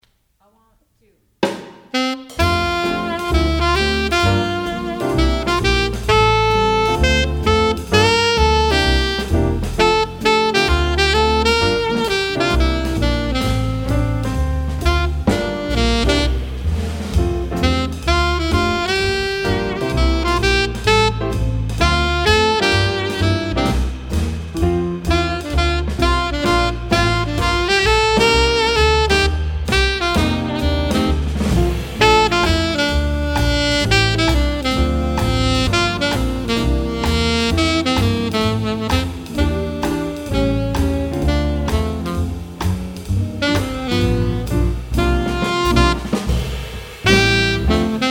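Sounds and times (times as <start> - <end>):
alto saxophone: 1.9 - 48.0.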